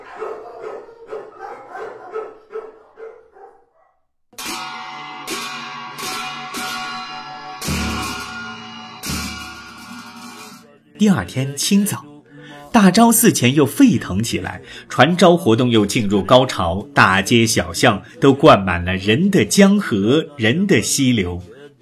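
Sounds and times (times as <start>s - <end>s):
dog barking: 0.0s - 4.0s
speech: 11.0s - 12.1s, 12.7s - 21.5s.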